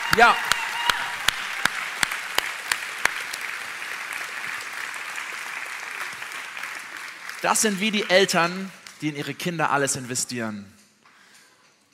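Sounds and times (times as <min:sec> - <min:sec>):
audience applause: 0:00.0 - 0:08.9
speech: 0:00.1 - 0:00.6, 0:07.4 - 0:10.8.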